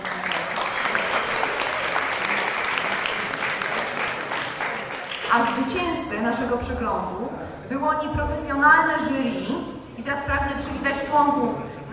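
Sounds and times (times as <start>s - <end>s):
audience applause: 0.0s - 5.6s
speech: 5.3s - 11.9s.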